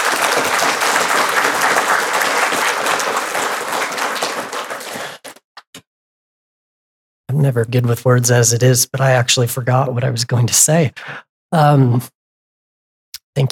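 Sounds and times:
audience applause: 0.0s - 5.4s
speech: 7.4s - 12.2s, 13.4s - 13.5s.

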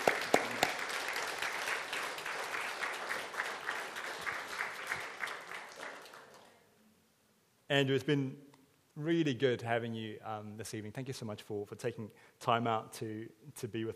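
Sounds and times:
audience applause: 0.0s - 6.5s
speech: 7.7s - 13.9s.

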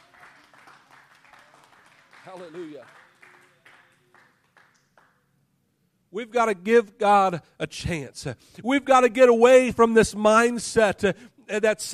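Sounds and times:
audience clapping hands: 0.0s - 5.2s
speech: 2.2s - 3.0s, 6.1s - 11.9s.

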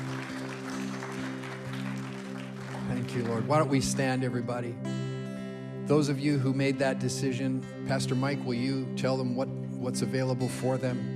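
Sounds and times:
audience applause: 0.0s - 4.0s
speech: 2.9s - 5.0s, 5.9s - 11.1s.

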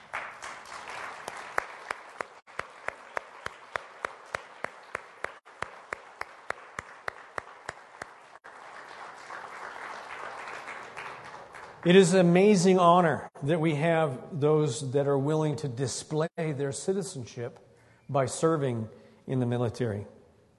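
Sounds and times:
audience applause: 0.0s - 12.4s
one sharper louder clapper: 0.0s - 12.4s
speech: 11.8s - 20.2s.

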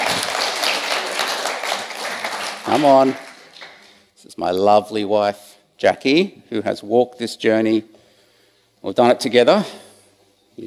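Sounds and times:
audience applause: 0.0s - 4.0s
speech: 2.7s - 3.3s, 4.3s - 8.0s, 8.8s - 9.8s.

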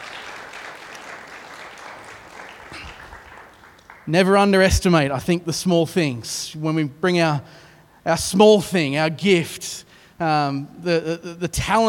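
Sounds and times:
crowd clapping: 0.0s - 4.8s
speech: 4.1s - 11.8s.

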